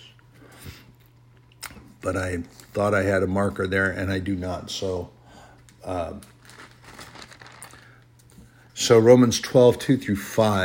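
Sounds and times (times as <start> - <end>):
low steady hum: 0.0 - 10.6
speech: 2.0 - 5.2, 5.8 - 6.3, 8.9 - 10.6
Bible paper pages being flipped by a preacher: 6.2 - 8.0.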